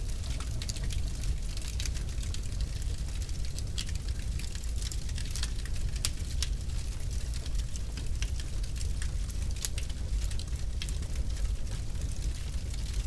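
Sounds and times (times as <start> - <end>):
fireplace fire crackling and popping: 0.0 - 13.0.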